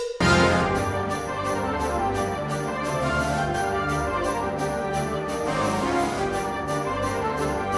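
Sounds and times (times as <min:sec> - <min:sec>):
Spanish dance music: 0:00.2 - 0:07.7.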